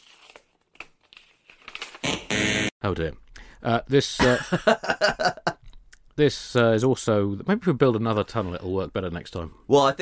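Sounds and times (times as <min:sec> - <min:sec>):
envelope paper rustling and crinkling: 0:00.0 - 0:02.0
envelope tearing open: 0:00.0 - 0:02.0
speech: 0:02.8 - 0:05.5, 0:06.2 - 0:10.0
laughter: 0:04.2 - 0:05.6.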